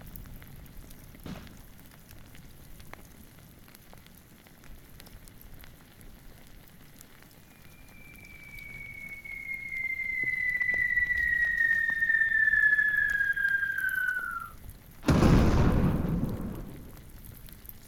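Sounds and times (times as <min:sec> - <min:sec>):
ambience: 0:07.3 - 0:17.6.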